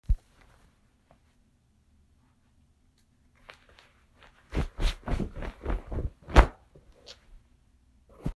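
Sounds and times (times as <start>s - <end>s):
clothing ruffling: 3.4s - 6.7s.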